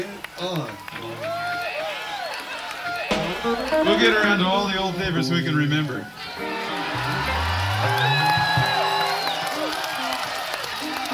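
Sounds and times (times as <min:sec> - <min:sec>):
speech: 0:00.0 - 0:01.4, 0:03.4 - 0:06.5
audience clapping: 0:00.0 - 0:04.1, 0:06.4 - 0:11.1.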